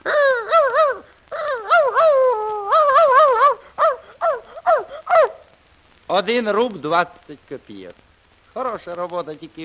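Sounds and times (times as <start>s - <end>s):
man imitating a dog barking: 0.0s - 5.5s
speech: 6.2s - 9.6s.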